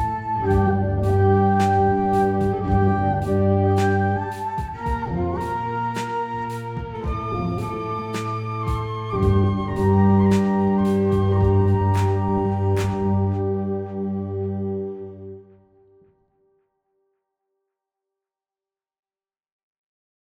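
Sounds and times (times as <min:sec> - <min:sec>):
shakuhachi: 0:00.0 - 0:15.9.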